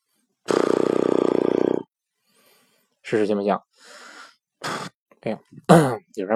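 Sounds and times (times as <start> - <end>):
lip-trill imitation of motorcycle engine: 0.5 - 1.9
speech: 3.1 - 4.0, 5.2 - 6.3.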